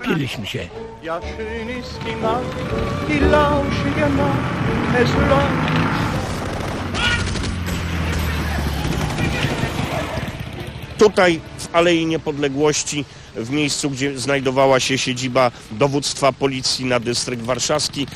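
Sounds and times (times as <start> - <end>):
speech: 0.1 - 6.0, 11.0 - 18.1
gunshots fired at a stopped car: 6.2 - 10.5.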